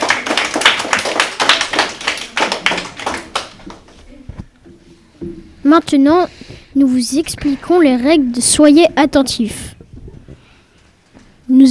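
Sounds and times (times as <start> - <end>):
audience applause: 0.0 - 4.0
speech: 5.7 - 9.7.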